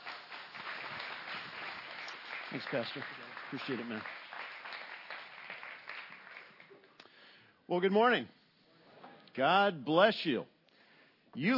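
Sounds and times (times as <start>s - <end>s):
audience applause: 0.0s - 6.8s
speech: 2.5s - 4.2s, 7.7s - 8.4s, 9.4s - 10.5s, 11.3s - 11.5s.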